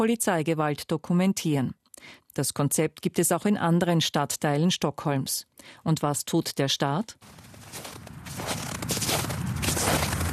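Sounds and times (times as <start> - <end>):
speech: 0.0 - 8.6
constant low wind-like rumble: 7.2 - 10.3
footsteps trudging through snow: 7.2 - 10.3.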